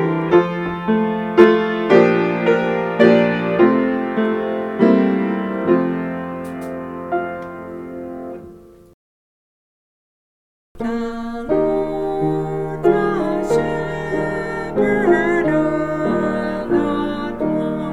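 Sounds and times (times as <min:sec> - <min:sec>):
piano: 0:00.0 - 0:09.0, 0:10.8 - 0:17.9
person singing: 0:10.8 - 0:17.9.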